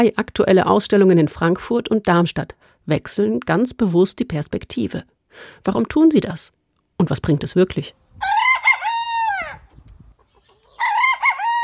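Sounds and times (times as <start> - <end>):
speech: 0.0 - 8.4
crested rooster crowing: 8.2 - 9.7, 10.7 - 11.6.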